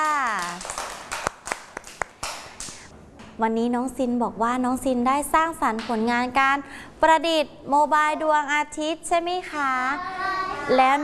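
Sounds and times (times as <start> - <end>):
audience clapping for a child: 0.0 - 2.9
speech: 3.4 - 11.0.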